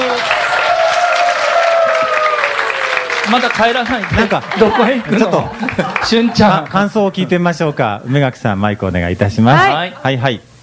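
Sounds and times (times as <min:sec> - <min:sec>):
audience applause after a performance: 0:00.0 - 0:07.0
speech: 0:03.3 - 0:10.5
laughter: 0:04.1 - 0:07.9.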